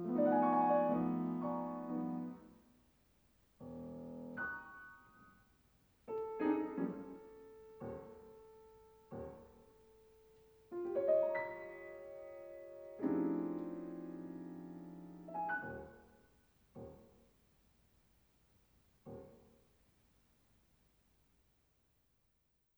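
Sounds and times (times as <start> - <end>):
piano: 0.0 - 2.8, 3.6 - 17.3.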